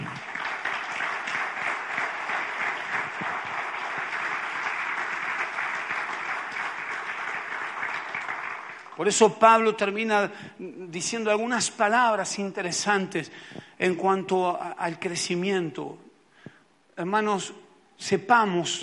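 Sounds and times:
audience clapping: 0.0s - 9.9s
speech: 9.0s - 16.0s, 17.0s - 18.8s.

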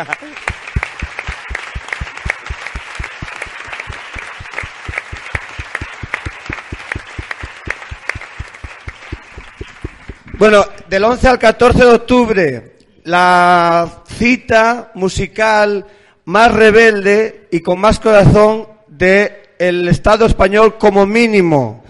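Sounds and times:
speech: 0.0s - 0.5s, 10.4s - 21.8s
audience applause: 0.0s - 10.5s.

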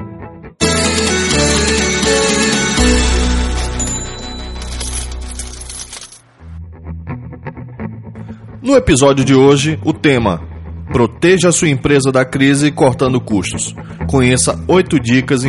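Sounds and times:
intro jingle for a small-business management podcast: 0.6s - 6.1s
speech: 8.7s - 15.4s.

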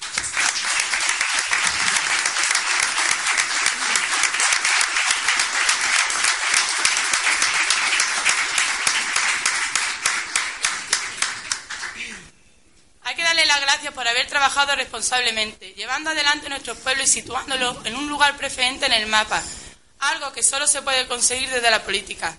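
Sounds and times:
audience applause: 0.0s - 12.0s
speech: 14.0s - 22.3s.

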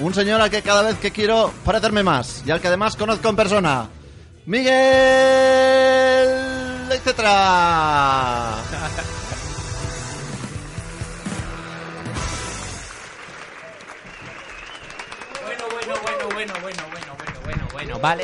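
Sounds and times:
speech: 0.0s - 5.8s, 7.1s - 9.2s, 17.8s - 18.2s
voices and shouts: 4.5s - 8.6s
laughter: 8.1s - 9.7s
crowd applause: 10.6s - 18.2s.

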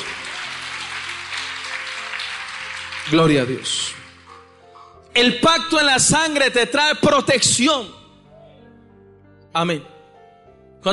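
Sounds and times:
audience clapping: 0.0s - 4.5s
speech: 3.1s - 4.0s, 5.2s - 8.0s, 9.5s - 9.9s.

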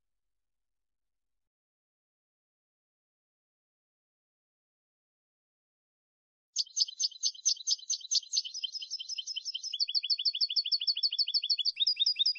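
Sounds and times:
European goldfinch twittering song: 6.6s - 12.3s.

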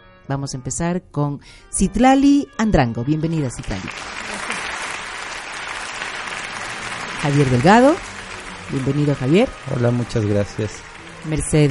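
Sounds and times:
speech: 0.3s - 4.3s, 7.2s - 8.1s, 8.7s - 11.7s
audience applause: 3.6s - 11.7s.

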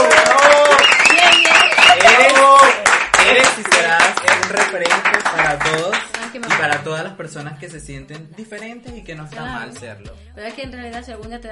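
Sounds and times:
excited voices whooping and cheering: 0.0s - 3.0s
team applause: 0.0s - 7.0s
speech: 7.3s - 11.5s.

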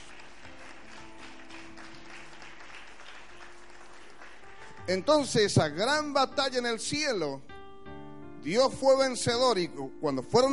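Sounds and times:
audience applause: 0.0s - 5.4s
speech: 4.9s - 7.5s, 8.4s - 10.5s.

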